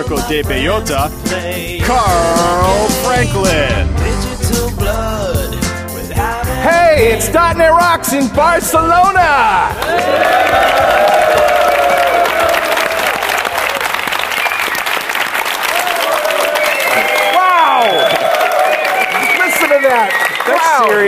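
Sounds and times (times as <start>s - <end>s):
speech: 0.1s - 5.6s, 6.2s - 11.6s, 20.5s - 21.0s
large crowd applauding and cheering: 9.6s - 21.0s.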